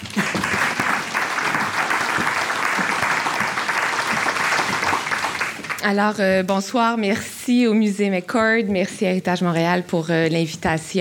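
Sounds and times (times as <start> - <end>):
audience applause: 0.0 - 5.8
speech: 5.8 - 10.9.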